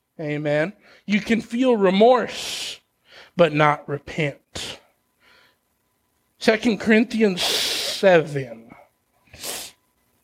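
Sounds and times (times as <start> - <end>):
speech: 0.2 - 2.8, 3.4 - 4.8, 6.4 - 8.6
sniffle: 7.4 - 8.0, 9.3 - 9.8.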